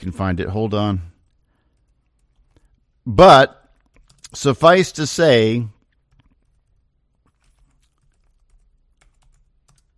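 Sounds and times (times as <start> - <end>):
speech: 0.0 - 1.1, 3.1 - 3.6, 4.3 - 5.8
fingers typing on a computer keyboard: 1.2 - 2.8, 3.7 - 4.5, 5.8 - 9.9.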